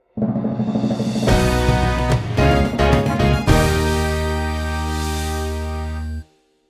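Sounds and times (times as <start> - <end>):
victory fanfare: 1.3 - 6.3.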